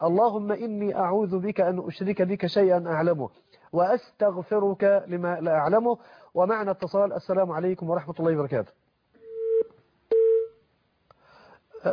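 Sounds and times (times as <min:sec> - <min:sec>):
speech: 0:00.0 - 0:08.8
telephone busy signal after a call drops: 0:09.2 - 0:10.6.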